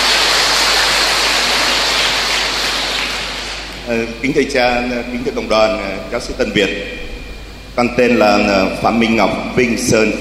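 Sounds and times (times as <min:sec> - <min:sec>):
audience applauding: 0:00.0 - 0:03.8
speech: 0:03.9 - 0:07.1, 0:07.8 - 0:10.1.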